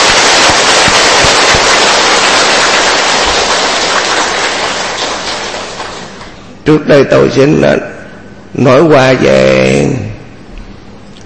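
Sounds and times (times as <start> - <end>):
audience applause: 0.0 - 6.4
speech: 6.6 - 8.0, 8.6 - 10.0.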